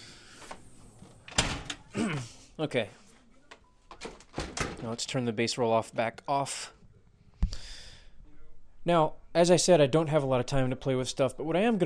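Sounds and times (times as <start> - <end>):
speech: 2.6 - 3.0, 4.8 - 6.8, 8.8 - 11.8
house door almost falling off rattling and banging: 4.0 - 5.0.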